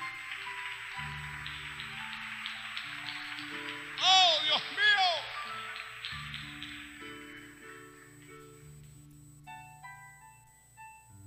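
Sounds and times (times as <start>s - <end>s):
audience applause: 0.0s - 8.6s.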